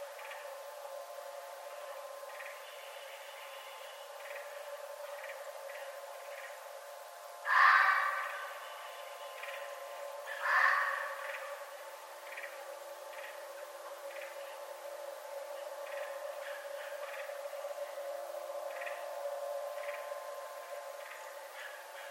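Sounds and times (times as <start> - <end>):
faint ticks and hum: 0.0 - 22.0
red fox rasping calls: 7.5 - 8.5, 10.3 - 11.5.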